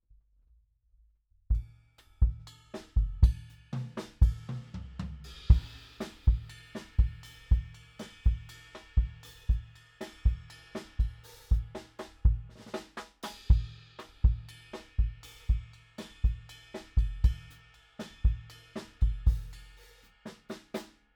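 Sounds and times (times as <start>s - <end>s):
kick drum: 1.5s - 3.6s, 4.2s - 4.5s, 5.5s - 12.6s, 13.5s - 15.7s, 16.3s - 17.5s, 18.3s - 19.5s.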